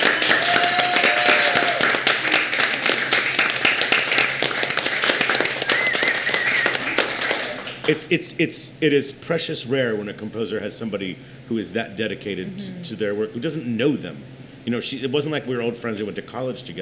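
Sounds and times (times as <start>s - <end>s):
room full of people applauding: 0.0s - 8.1s
faint whoops or whistles: 5.3s - 7.0s
speech: 7.9s - 16.8s.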